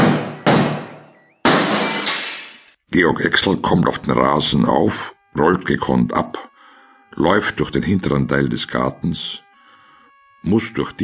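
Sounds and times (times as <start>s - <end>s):
window glass shattering as someone jumps through it: 1.4s - 2.8s
speech: 2.9s - 6.5s, 7.2s - 9.4s, 10.4s - 11.0s.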